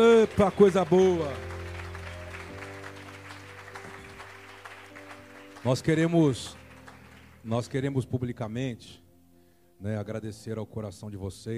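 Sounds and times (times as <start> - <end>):
speech: 0.0 - 1.5, 5.6 - 6.6, 7.4 - 9.0, 9.8 - 11.5
audience applause: 0.0 - 7.5
keyboard or organ chords: 0.0 - 11.2.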